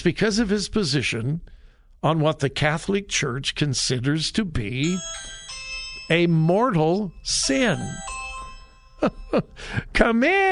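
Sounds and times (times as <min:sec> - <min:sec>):
speech: 0:00.0 - 0:05.4, 0:06.1 - 0:08.1, 0:09.0 - 0:10.5
phone notification ding: 0:04.8 - 0:09.6.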